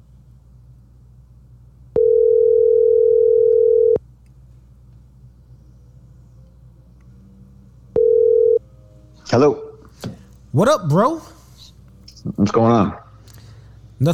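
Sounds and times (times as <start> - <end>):
phone line ringing tone: 2.0 - 4.0, 8.0 - 8.6
speech: 9.3 - 9.6, 10.6 - 11.3, 12.3 - 13.0.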